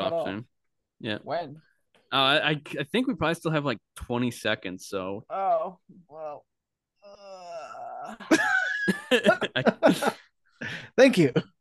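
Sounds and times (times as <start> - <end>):
speech: 0.2 - 7.4, 8.1 - 10.2, 11.0 - 11.5
drawn-out voiced yawn with a stretch: 7.0 - 8.2.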